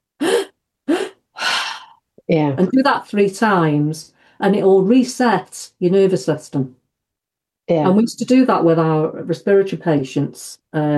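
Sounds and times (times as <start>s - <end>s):
stacked deep breaths: 0.2s - 2.1s
speech: 2.3s - 6.8s, 7.7s - 10.9s.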